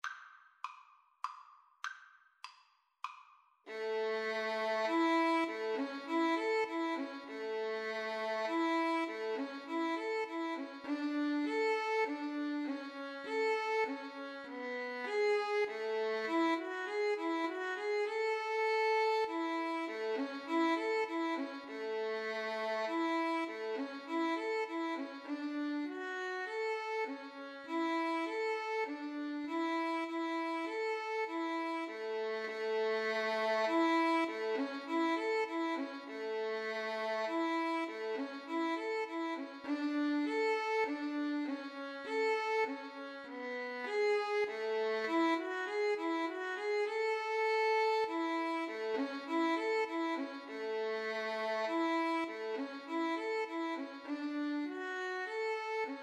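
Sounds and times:
violin playing a minuet: 0:03.7 - 0:56.0.

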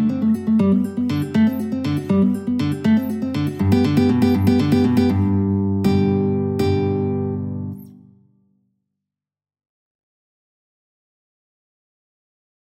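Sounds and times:
caprice on guitar: 0:00.0 - 0:08.6.

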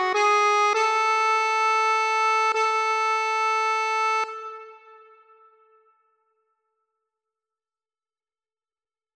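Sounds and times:
accordion playing a folk tune: 0:00.0 - 0:04.9.

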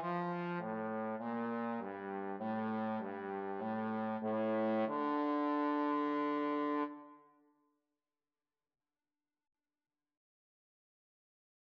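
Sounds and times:
trombone duet playing an aria: 0:00.0 - 0:07.0.

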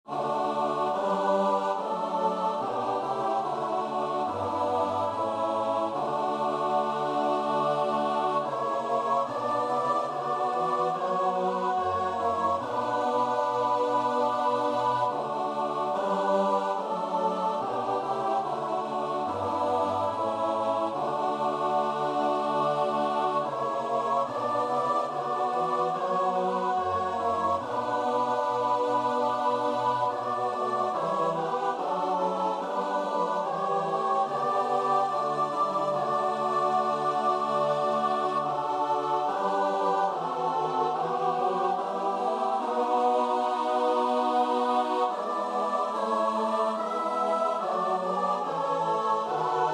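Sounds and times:
choir singing: 0:00.0 - 0:49.7.

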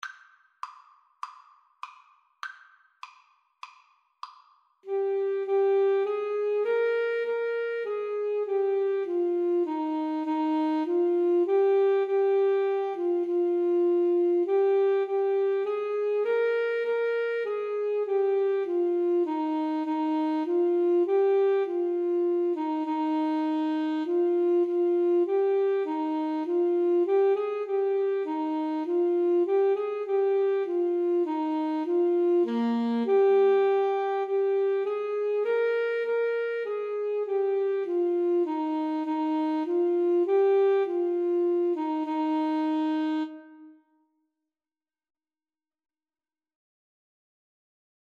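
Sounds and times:
alto saxophone duet: 0:04.8 - 0:43.9.

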